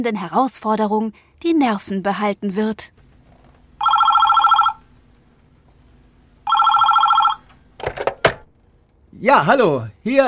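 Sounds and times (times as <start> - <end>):
speech: 0.0 - 3.0, 9.2 - 10.2
telephone ringing: 3.8 - 5.0, 6.4 - 8.3.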